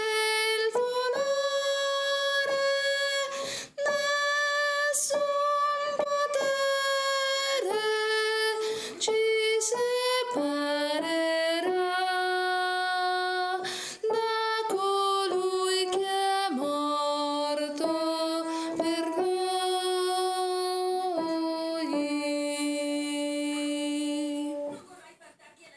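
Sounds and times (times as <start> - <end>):
sopranos singing: 0.0 - 24.8.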